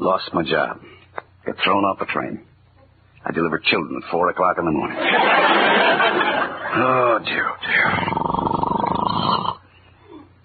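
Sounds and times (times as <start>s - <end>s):
speech: 0.0s - 2.5s, 3.2s - 8.6s
laughter: 4.9s - 7.2s
snoring: 7.8s - 9.6s.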